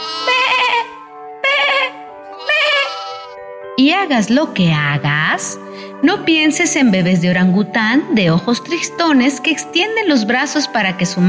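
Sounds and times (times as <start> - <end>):
sheep bleating: 0.0 - 3.4
speech: 3.8 - 11.2.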